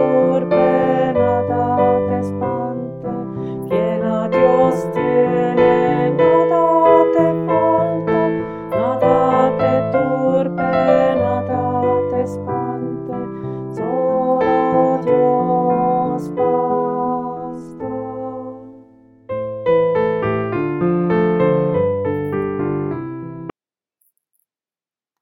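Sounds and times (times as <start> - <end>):
person singing voice training exercises: 0.0 - 19.0
piano for voice training: 0.0 - 23.5.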